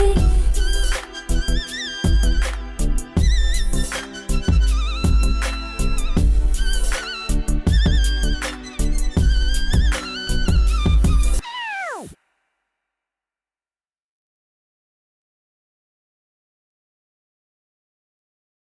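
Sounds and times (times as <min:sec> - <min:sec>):
flute: 0:00.0 - 0:12.2.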